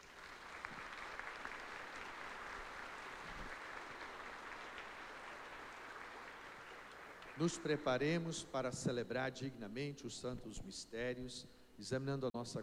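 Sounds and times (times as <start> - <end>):
audience applauding: 0.0 - 7.8
speech: 7.4 - 12.6.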